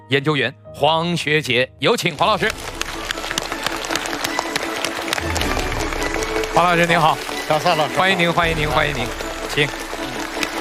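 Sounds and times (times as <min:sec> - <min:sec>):
speech: 0:00.1 - 0:02.8, 0:06.6 - 0:09.8
audience applause: 0:02.4 - 0:10.5.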